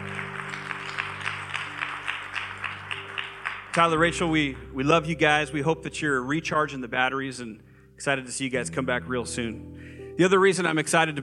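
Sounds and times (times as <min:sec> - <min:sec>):
crowd applause: 0:00.0 - 0:04.7
speech: 0:03.8 - 0:11.2.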